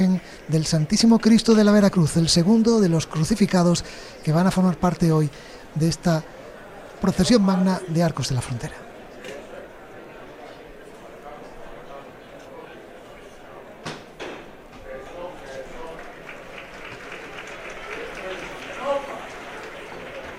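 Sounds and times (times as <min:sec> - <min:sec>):
speech: 0:00.0 - 0:06.4, 0:07.0 - 0:08.8
applause for the lifting of the Santísimo Cristo del Perdón float: 0:15.6 - 0:20.3.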